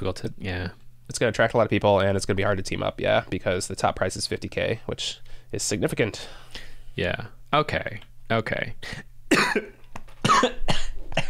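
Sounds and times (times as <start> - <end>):
speech: 0.0 - 11.2
sick person coughing after inhaling saliva: 9.3 - 11.2.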